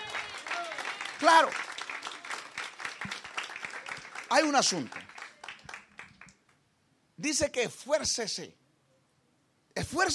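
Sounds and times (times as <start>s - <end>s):
audience applause: 0.0s - 6.4s
speech: 1.2s - 1.7s, 4.3s - 5.0s, 7.2s - 8.6s, 9.8s - 10.1s.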